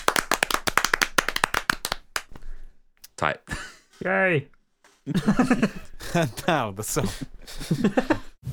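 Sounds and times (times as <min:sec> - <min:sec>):
applause: 0:00.0 - 0:02.4
speech: 0:03.2 - 0:08.3
laughter: 0:03.5 - 0:04.0, 0:05.0 - 0:08.4.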